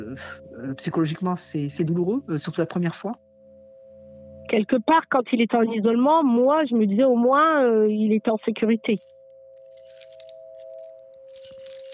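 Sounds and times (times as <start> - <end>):
speech: 0.0 - 3.2, 4.5 - 9.2
keys jangling: 8.9 - 9.1, 9.7 - 11.9.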